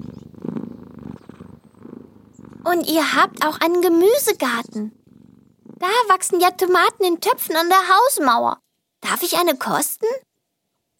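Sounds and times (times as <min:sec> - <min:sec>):
cat purring while scratched behind the ear on an alpine pasture: 0:00.0 - 0:08.6
speech: 0:02.6 - 0:05.0, 0:05.8 - 0:10.2.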